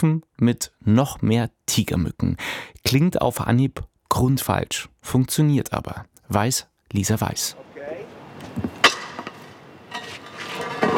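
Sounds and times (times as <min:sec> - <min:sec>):
speech: 0:00.0 - 0:08.7
heavy metal manhole cover scraping and clanking over cobblestones: 0:08.1 - 0:10.9.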